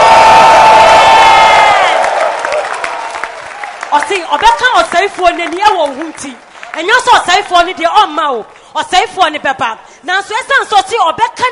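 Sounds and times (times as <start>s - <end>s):
audience shouting: 0.0s - 3.7s
audience clapping: 0.0s - 7.8s
speech: 4.2s - 11.4s.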